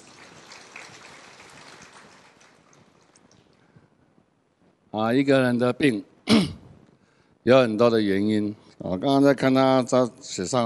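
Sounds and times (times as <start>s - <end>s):
audience applause: 0.0s - 3.2s
speech: 5.0s - 6.5s, 7.4s - 10.6s.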